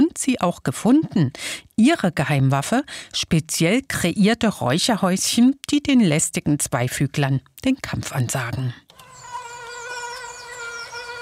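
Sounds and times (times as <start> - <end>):
speech: 0.3 - 8.8
mosquitoes buzzing in the Erzgebirge forests: 8.9 - 11.2.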